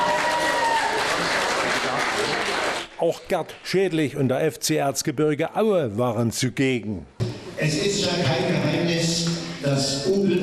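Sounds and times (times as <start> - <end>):
crowd applause at a fan club gathering: 0.0 - 2.9
speech: 3.0 - 10.4.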